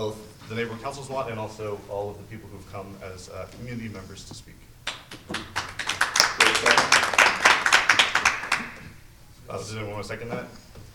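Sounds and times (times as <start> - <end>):
speech: 0.0 - 4.7, 9.5 - 10.7
small group applause at a meeting: 4.8 - 8.9.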